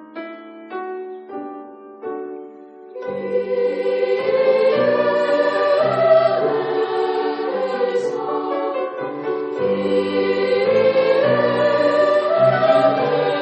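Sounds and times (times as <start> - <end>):
senior school choir singing a mass: 3.0 - 13.4.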